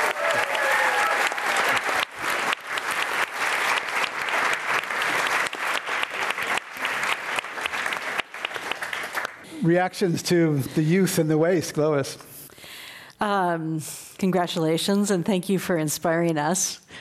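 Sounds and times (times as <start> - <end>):
audience applause: 0.0 - 9.4
speech: 9.6 - 12.3, 13.2 - 17.0.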